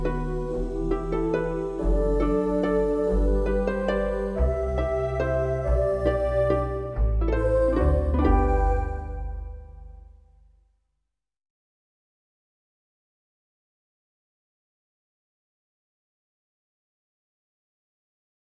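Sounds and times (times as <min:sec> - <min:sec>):
instrumental music: 0:00.0 - 0:10.6.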